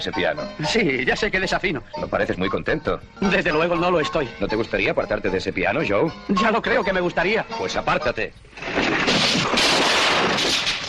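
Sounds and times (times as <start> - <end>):
speech: 0.0 - 9.7
loud gunfire in a western film scene shooting the piano player: 8.6 - 10.8.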